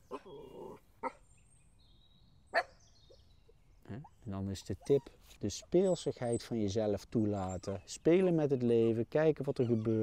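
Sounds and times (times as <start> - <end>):
dog whiny yelp: 0.0 - 1.2, 2.5 - 2.7, 4.8 - 5.2, 9.5 - 10.0
small dogs barking: 0.0 - 1.2, 2.5 - 2.8
speech: 4.0 - 10.0.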